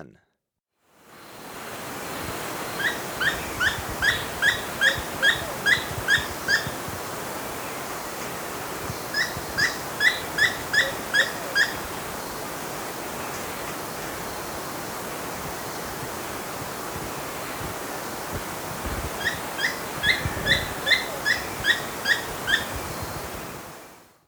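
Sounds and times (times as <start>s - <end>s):
buff-throated tody-tyrant chip-like notes: 2.3s - 16.8s, 17.4s - 23.6s.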